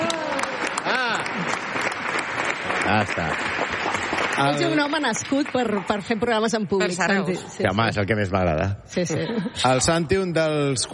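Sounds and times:
steady audience applause: 0:00.0 - 0:06.4
speech: 0:02.9 - 0:03.8, 0:04.4 - 0:10.9.

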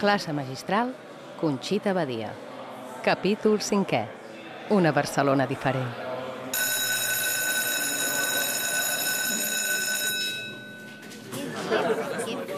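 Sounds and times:
speech: 0:00.0 - 0:06.0
classroom students chattering: 0:00.0 - 0:10.2, 0:11.2 - 0:12.5
high electronic ringing tone: 0:06.6 - 0:11.0
laughter: 0:11.2 - 0:12.5.

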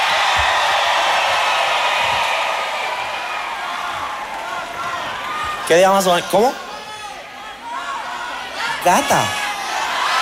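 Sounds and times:
applause and cheering: 0:00.0 - 0:05.9
speech: 0:05.7 - 0:06.6, 0:08.8 - 0:09.4.

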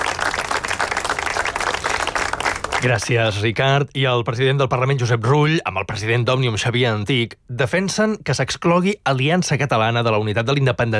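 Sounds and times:
attendees applauding at a memorial ceremony: 0:00.0 - 0:03.1
speech: 0:02.8 - 0:10.9.

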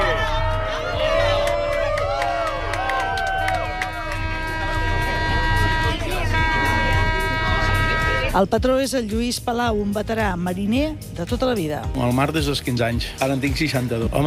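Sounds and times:
passengers on a boat cheering during eclipse: 0:00.0 - 0:08.3
boat engine rumble: 0:00.0 - 0:12.6
speech: 0:08.4 - 0:14.2.

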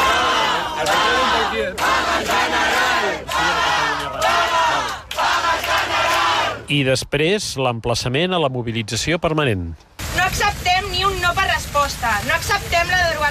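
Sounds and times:
protesters chanting slogans: 0:00.0 - 0:06.7
speech: 0:06.7 - 0:13.3.

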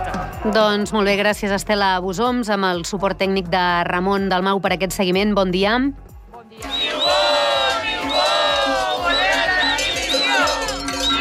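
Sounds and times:
speech: 0:00.4 - 0:07.1
crowd of teachers cheering and yelling in protest on the N230 road: 0:06.6 - 0:11.2
shrill protest whistles: 0:06.6 - 0:11.2
steady low percussion beat: 0:06.6 - 0:11.2.

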